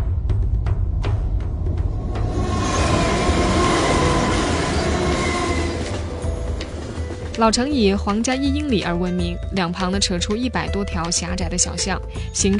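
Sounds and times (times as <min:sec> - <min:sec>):
train rumbling past: 0:00.0 - 0:10.0
faint metallic squeal of wheels: 0:02.3 - 0:07.4
speech: 0:07.4 - 0:12.5.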